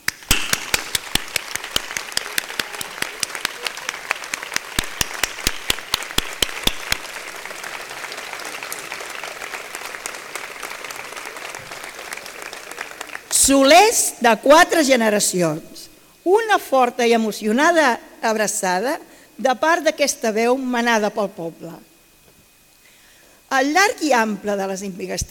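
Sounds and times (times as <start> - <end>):
applause: 0.0 - 13.5
speech: 13.5 - 21.9, 23.5 - 25.2.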